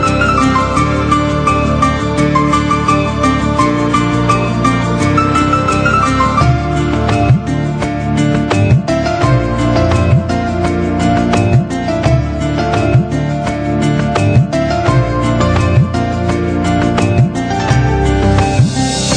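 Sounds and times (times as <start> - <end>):
romantic instrumental music: 0.0 - 19.1.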